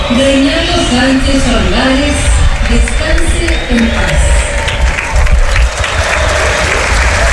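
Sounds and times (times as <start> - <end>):
speech: 0.1 - 4.5
stadium crowd applauding in tribute to a late former federation president: 1.7 - 7.3.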